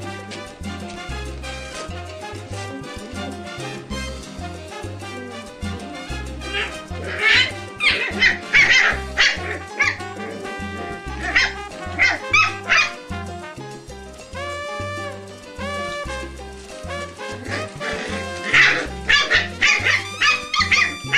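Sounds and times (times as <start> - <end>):
puppies giving sharp high yips and squeals in play: 2.3 - 13.3, 17.2 - 21.1.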